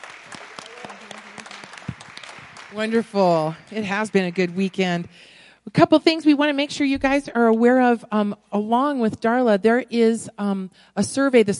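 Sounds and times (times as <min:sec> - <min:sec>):
room full of people clapping: 0:00.0 - 0:05.4
speech: 0:02.7 - 0:11.5.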